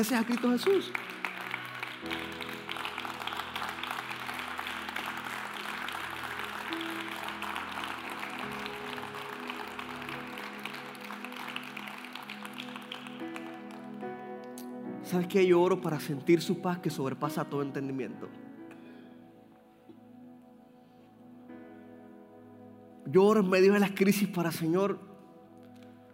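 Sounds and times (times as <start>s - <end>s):
speech: 0.0s - 1.2s, 2.0s - 2.4s, 15.1s - 18.4s, 23.1s - 25.1s
audience applause: 0.0s - 14.0s.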